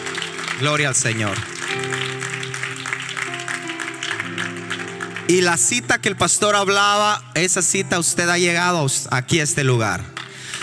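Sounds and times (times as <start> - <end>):
applause: 0.0 - 6.6
speech: 0.6 - 2.3, 5.3 - 10.2.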